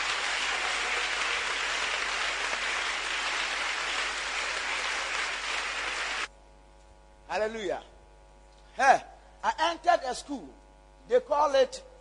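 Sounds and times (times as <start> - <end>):
audience clapping: 0.0 - 6.3
speech: 7.4 - 7.9, 8.8 - 11.9.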